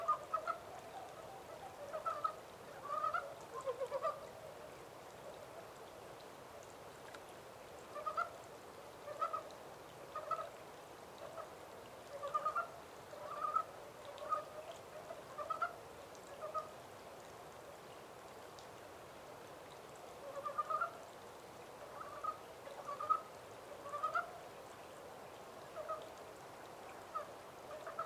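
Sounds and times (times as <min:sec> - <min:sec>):
montane brown frog clucking croaks: 0:00.0 - 0:04.3, 0:07.9 - 0:08.4, 0:09.0 - 0:09.5, 0:10.1 - 0:10.5, 0:12.1 - 0:16.7, 0:20.2 - 0:21.0, 0:21.8 - 0:24.4, 0:25.7 - 0:26.1, 0:27.1 - 0:28.0
steady background hiss: 0:00.0 - 0:28.0.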